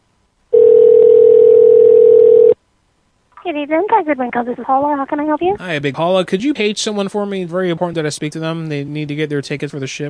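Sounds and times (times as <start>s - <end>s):
telephone line tone: 0.5s - 2.6s
speech: 3.5s - 10.0s.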